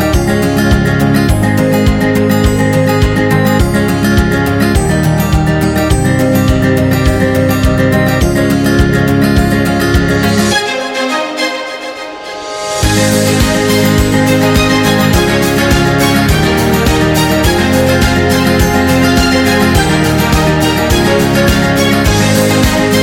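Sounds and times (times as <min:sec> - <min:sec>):
acoustic guitar: 0:00.0 - 0:11.4, 0:12.2 - 0:23.0.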